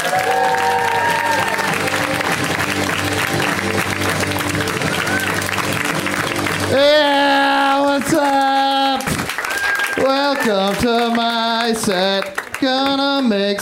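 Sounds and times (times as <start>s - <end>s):
whoops and cheers: 0.0s - 2.2s, 4.9s - 5.5s, 9.4s - 10.1s
audience applause for comedian: 0.0s - 13.6s.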